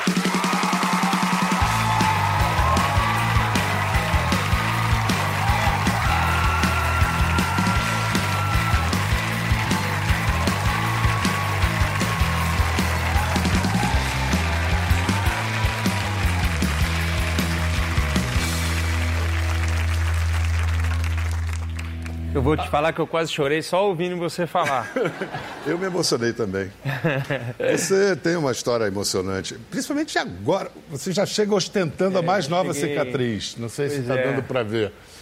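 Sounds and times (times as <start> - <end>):
audience applause: 0.0 - 22.6
speech: 22.5 - 35.1
laughter: 24.6 - 26.0, 26.8 - 28.0.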